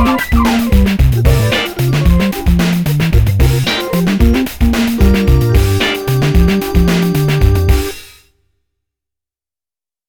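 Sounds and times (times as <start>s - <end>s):
deep funk organ on Korg Radias: 0.0s - 8.0s.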